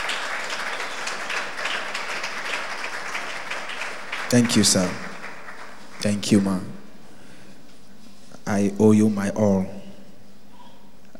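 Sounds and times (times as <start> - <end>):
audience clapping: 0.0 - 6.8
speech: 4.3 - 5.1, 6.0 - 6.7, 8.5 - 9.8.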